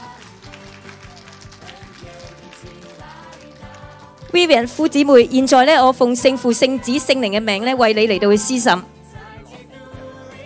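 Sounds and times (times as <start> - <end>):
audience applause: 0.0 - 5.0
speech: 4.3 - 9.0.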